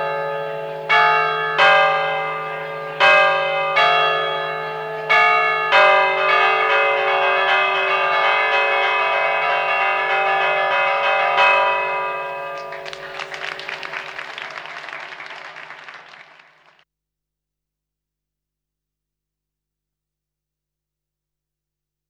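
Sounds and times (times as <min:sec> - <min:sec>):
bells ringing: 0:00.0 - 0:16.7.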